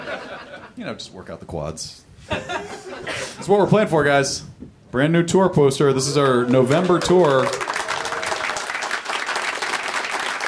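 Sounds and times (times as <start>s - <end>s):
laughter: 0.0s - 0.8s, 2.3s - 3.5s
speech: 0.8s - 7.7s
audience applause: 6.0s - 10.4s.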